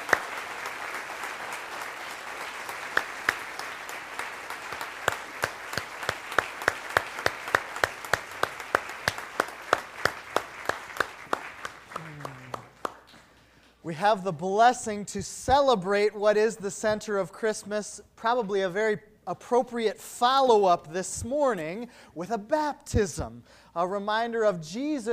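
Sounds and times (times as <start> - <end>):
audience applause: 0.0 - 13.5
speech: 13.9 - 25.1.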